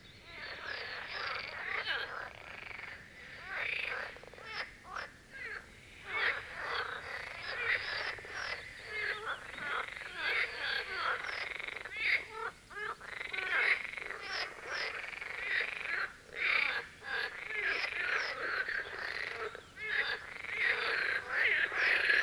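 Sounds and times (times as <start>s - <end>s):
marsh frogs chorus croaking: 0.0s - 22.2s.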